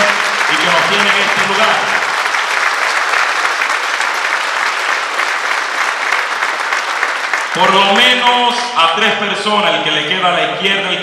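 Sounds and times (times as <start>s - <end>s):
audience applause: 0.0s - 8.6s
speech: 7.6s - 11.0s.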